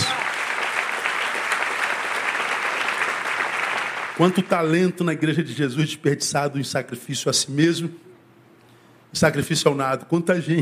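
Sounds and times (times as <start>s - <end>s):
audience applause: 0.0s - 4.5s
speech: 4.2s - 8.1s, 9.1s - 10.6s.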